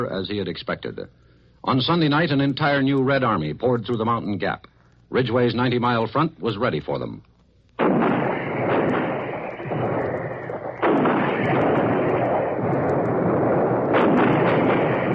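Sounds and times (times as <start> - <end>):
speech: 0.0 - 7.3
heavy artillery fire: 7.8 - 15.1.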